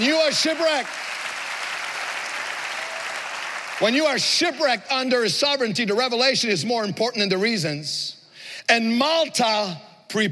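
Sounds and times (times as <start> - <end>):
speech: 0.0 - 1.1, 3.8 - 10.3
audience applauding: 0.0 - 5.1.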